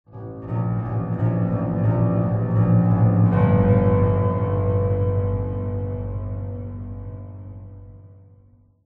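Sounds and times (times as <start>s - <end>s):
atmospheric mystery piano: 0.1s - 8.8s.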